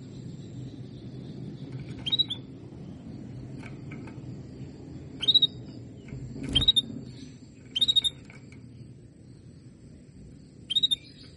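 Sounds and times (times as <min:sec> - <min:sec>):
Belgian canary calls: 0:01.8 - 0:02.5, 0:05.2 - 0:05.6, 0:06.5 - 0:07.0, 0:07.7 - 0:08.2, 0:10.7 - 0:11.3.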